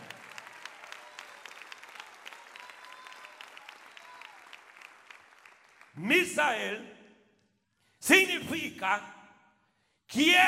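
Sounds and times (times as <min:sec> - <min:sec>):
audience applauding: 0:00.0 - 0:06.0
speech: 0:06.0 - 0:07.0, 0:08.0 - 0:09.2, 0:10.1 - 0:10.4.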